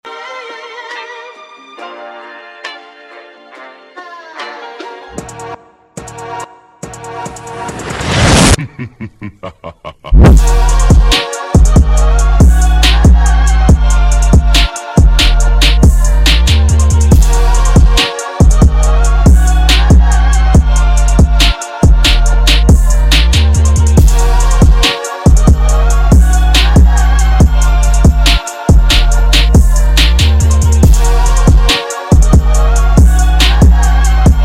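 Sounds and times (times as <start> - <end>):
phonk music: 0.4 - 34.4
laughter: 8.6 - 10.3.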